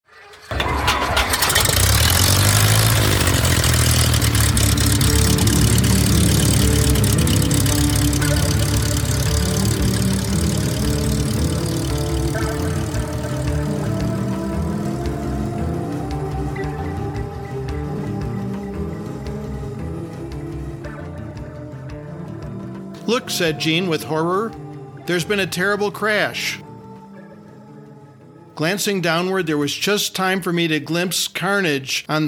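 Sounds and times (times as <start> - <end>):
propeller aircraft engine starting for takeoff: 0.5 - 20.5
speech: 23.2 - 26.6, 28.6 - 32.2.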